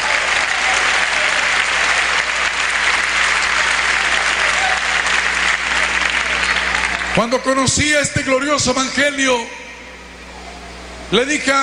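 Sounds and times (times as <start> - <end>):
loud sustained applause from a large audience: 0.0 - 7.3
speech: 7.2 - 9.6, 11.1 - 11.6.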